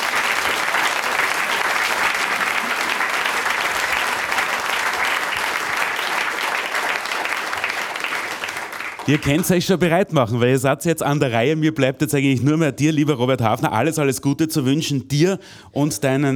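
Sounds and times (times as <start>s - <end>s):
audience applause: 0.0s - 9.7s
speech: 9.1s - 16.3s.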